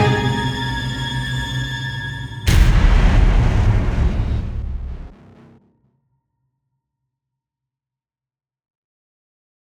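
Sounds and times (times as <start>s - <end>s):
cinematic hybrid orchestral music: 0.0s - 5.0s.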